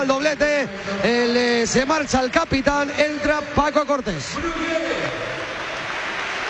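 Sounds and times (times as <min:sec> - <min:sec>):
speech: 0:00.0 - 0:05.4
stadium crowd applauding: 0:00.0 - 0:06.4.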